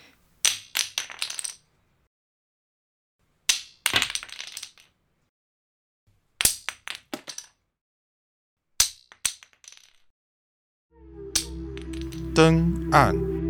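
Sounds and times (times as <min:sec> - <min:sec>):
wooden divination blocks clattering onto a hard floor: 0:00.0 - 0:01.7, 0:03.5 - 0:05.0, 0:06.5 - 0:07.6, 0:08.8 - 0:10.0
speech: 0:12.4 - 0:13.3.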